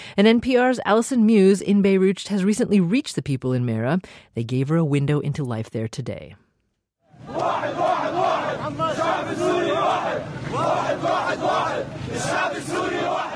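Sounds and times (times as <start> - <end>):
speech: 0.2 - 6.4
protesters chanting while marching through the streets of Mara near Aleppo: 7.1 - 13.3.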